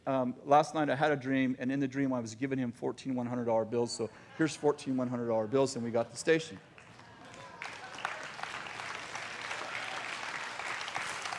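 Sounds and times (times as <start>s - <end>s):
speech: 0.0s - 6.7s
audience clapping: 6.7s - 11.3s.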